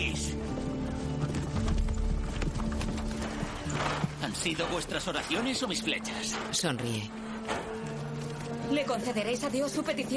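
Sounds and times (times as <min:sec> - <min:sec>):
hooves of several horses clip-clopping: 0:00.0 - 0:10.1
horse snort or whinny: 0:02.7 - 0:06.5
speech: 0:04.4 - 0:07.6, 0:08.7 - 0:10.1.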